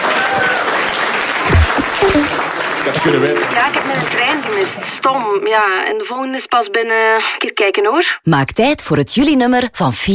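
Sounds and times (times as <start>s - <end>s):
audience applause: 0.0s - 5.0s
speech: 2.1s - 10.1s.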